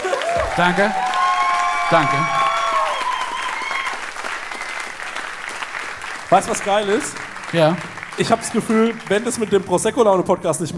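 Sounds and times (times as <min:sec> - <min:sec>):
group clapping: 0:00.0 - 0:10.7
speech: 0:00.6 - 0:01.0, 0:01.9 - 0:02.4, 0:06.3 - 0:10.7
whistle-like tones: 0:01.8 - 0:05.3.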